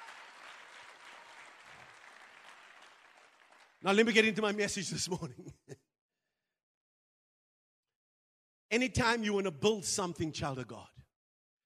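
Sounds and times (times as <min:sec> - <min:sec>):
audience clapping hands: 0:00.0 - 0:04.6
speech: 0:03.8 - 0:05.8, 0:08.8 - 0:10.9.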